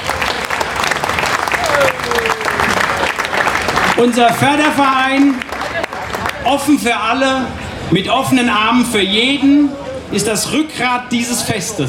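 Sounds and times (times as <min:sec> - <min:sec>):
audience applause: 0:00.0 - 0:06.4
speech: 0:04.0 - 0:05.5, 0:06.4 - 0:11.8.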